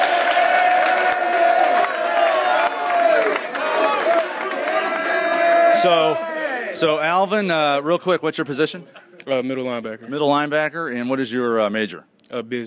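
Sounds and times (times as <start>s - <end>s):
audience applause: 0.0s - 6.3s
speech: 5.8s - 12.6s.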